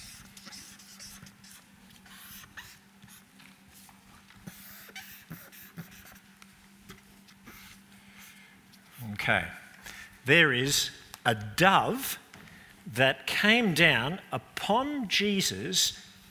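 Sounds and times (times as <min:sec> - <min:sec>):
faint scratching of someone drawing a picture: 0:00.0 - 0:03.3, 0:04.4 - 0:06.2
speech: 0:09.3 - 0:09.6, 0:10.3 - 0:12.2, 0:12.9 - 0:16.0.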